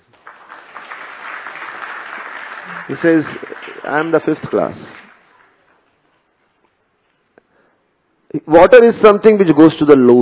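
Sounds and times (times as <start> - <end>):
audience clapping: 0.0 - 5.9
speech: 2.9 - 5.0, 8.4 - 10.2.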